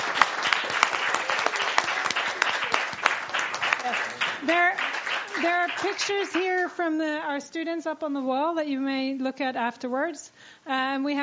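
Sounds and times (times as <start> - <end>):
audience applause: 0.0 - 6.8
speech: 4.4 - 11.2.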